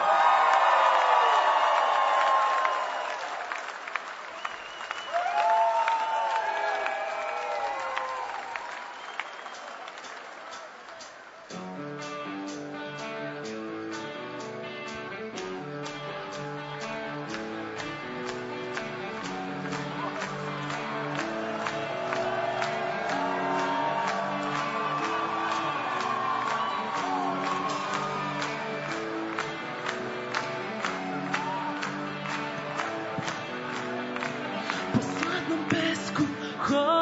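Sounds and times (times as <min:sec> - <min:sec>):
audience cheering and applause for a band at an anniversary concert: 0:00.0 - 0:12.2, 0:15.3 - 0:36.4
band playing music: 0:11.5 - 0:36.4.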